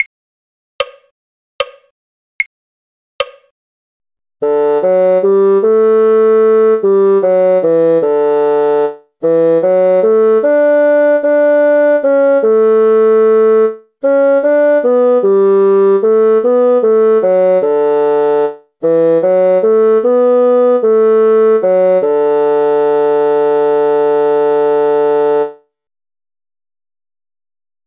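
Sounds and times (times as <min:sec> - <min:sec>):
bassoon: 0:04.4 - 0:25.6.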